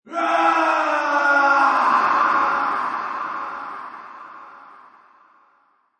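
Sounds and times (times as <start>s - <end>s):
man screaming in pain and agony with reverb echo: 0.1s - 2.8s.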